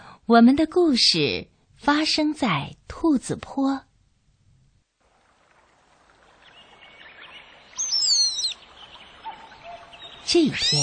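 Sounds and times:
speech: 0.3s - 3.9s, 10.3s - 10.8s
birds chirping on a hillside: 6.0s - 10.8s
clear whistling bird call: 7.7s - 10.8s.

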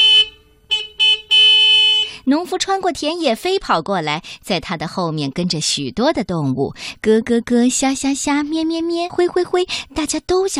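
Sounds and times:
tractor horn honking: 0.0s - 2.2s
speech: 2.3s - 10.5s.

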